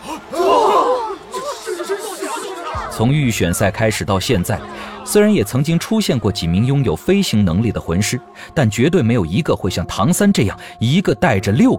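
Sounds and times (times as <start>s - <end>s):
audience crowd exclaiming in surprise: 0.0s - 3.1s
laughter: 0.0s - 9.0s
scattered murmur of overlapping reactions: 0.0s - 10.9s
speech: 3.0s - 11.7s.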